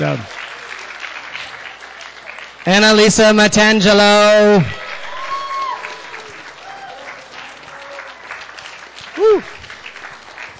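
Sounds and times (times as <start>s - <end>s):
speech: 0.0s - 0.4s, 2.6s - 4.8s
audience applause: 0.0s - 10.5s.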